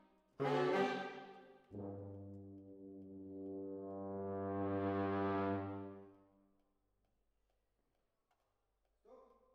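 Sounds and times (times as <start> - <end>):
horns playing: 0.4 - 2.6, 3.2 - 6.1.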